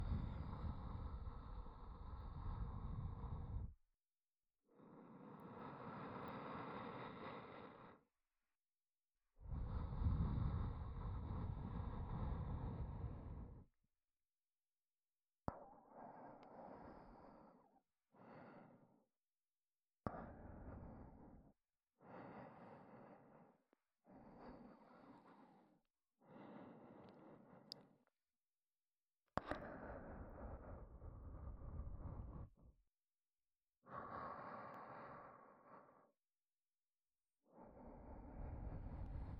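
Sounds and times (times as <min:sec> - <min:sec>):
ASMR breathy sighs: 0:00.0 - 0:03.8, 0:04.7 - 0:08.2, 0:09.4 - 0:13.7, 0:15.8 - 0:19.2, 0:20.1 - 0:28.1, 0:29.4 - 0:32.8, 0:33.8 - 0:36.3, 0:37.5 - 0:39.3.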